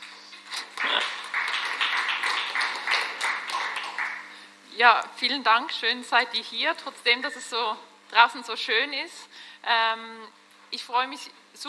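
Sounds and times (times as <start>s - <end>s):
small audience clapping: 0.0s - 4.5s
speech: 4.8s - 11.6s.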